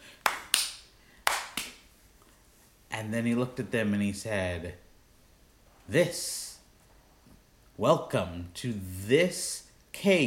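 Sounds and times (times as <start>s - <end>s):
hand claps imitating a crab clapping its pincers: 0.2s - 1.8s
speech: 3.0s - 4.8s, 5.9s - 6.4s, 7.8s - 10.2s.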